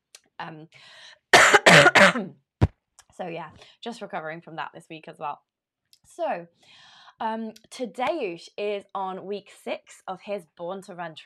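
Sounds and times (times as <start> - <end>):
speech: 0.4 - 2.4, 3.2 - 5.5, 6.1 - 11.2
coughing: 1.4 - 2.3.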